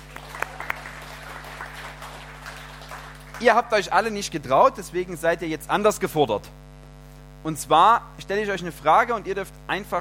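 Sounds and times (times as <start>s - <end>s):
audience applause: 0.0s - 3.8s
speech: 3.4s - 6.6s, 7.4s - 9.9s.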